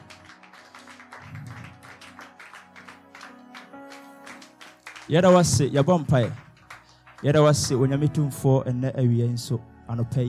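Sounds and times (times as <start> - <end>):
audience clapping hands: 0.0 - 8.2
speech: 5.1 - 6.4, 7.2 - 10.2.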